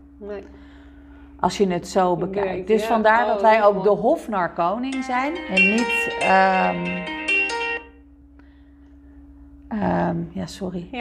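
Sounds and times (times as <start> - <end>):
speech: 0.2 - 0.8, 1.4 - 7.2, 9.8 - 10.9
mobile phone ringing: 4.9 - 8.0.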